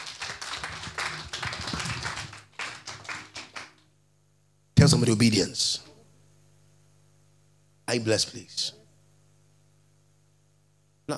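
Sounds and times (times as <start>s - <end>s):
audience clapping hands: 0.0s - 4.0s
speech: 4.9s - 5.9s, 7.9s - 8.8s.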